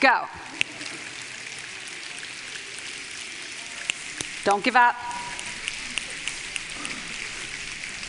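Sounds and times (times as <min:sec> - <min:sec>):
speech: 0:00.0 - 0:00.5, 0:04.4 - 0:05.3
audience snapping fingers: 0:05.2 - 0:07.3.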